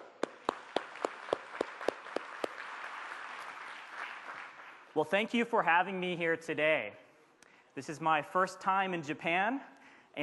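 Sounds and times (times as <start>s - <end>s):
audience applause: 0.0s - 5.0s
speech: 5.0s - 7.0s, 7.8s - 10.2s.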